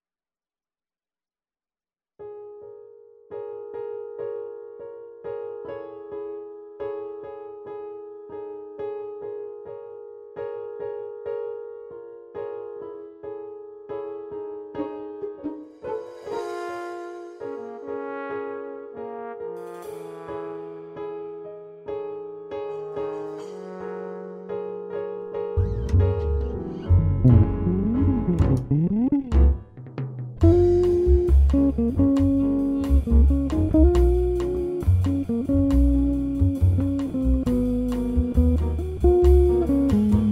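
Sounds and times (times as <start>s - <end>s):
bossa nova music: 15.0s - 21.4s, 22.6s - 24.8s, 25.5s - 40.3s.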